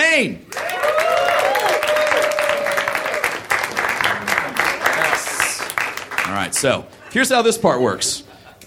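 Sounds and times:
speech: 0.2 - 0.5, 6.5 - 8.6
whoops and high cheers: 0.5 - 3.4
audience applause: 0.5 - 6.7.

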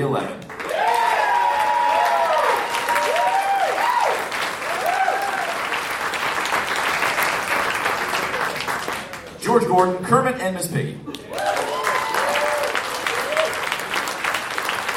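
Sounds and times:
speech: 0.0 - 0.5, 9.5 - 11.2
audience applause voting for a favorite: 0.5 - 9.4, 11.1 - 14.9
audience whoops and cheers: 0.6 - 5.7, 11.2 - 13.8.

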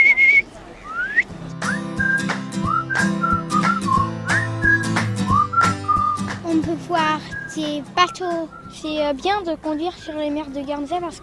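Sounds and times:
whistled imitation of small bird's loud call: 0.0 - 6.3, 7.2 - 8.9
speech: 6.9 - 11.2.

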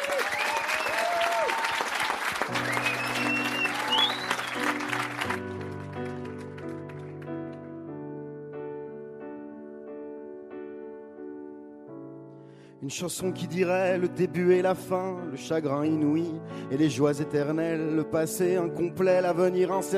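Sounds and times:
audience applause: 0.0 - 7.4
speech: 12.8 - 19.9.

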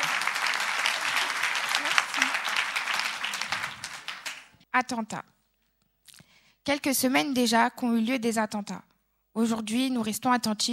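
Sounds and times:
audience applauding a poet: 0.0 - 4.6
speech: 4.8 - 5.3, 6.6 - 10.7.

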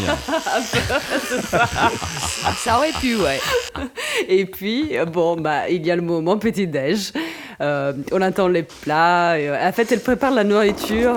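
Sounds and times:
electric toothbrush humming while brushing teeth: 0.0 - 3.8
laughter: 0.0 - 4.0
speech: 0.1 - 11.1.

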